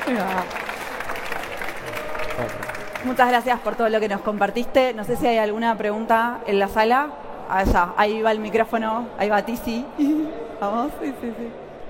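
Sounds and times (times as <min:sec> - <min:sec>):
audience applause: 0:00.0 - 0:03.8
speech: 0:00.1 - 0:00.7, 0:02.4 - 0:11.6.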